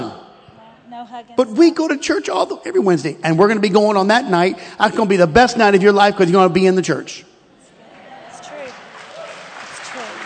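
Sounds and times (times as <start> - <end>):
speech: 1.0 - 7.3
audience clapping: 8.3 - 10.2.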